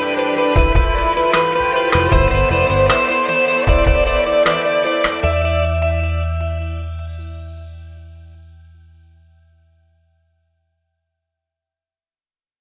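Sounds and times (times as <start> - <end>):
pop rock music: 0.0 - 7.5.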